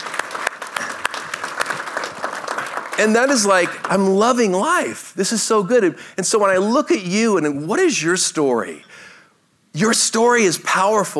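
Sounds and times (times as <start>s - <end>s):
crowd clapping: 0.0s - 4.2s
speech: 3.0s - 9.1s, 9.8s - 11.1s.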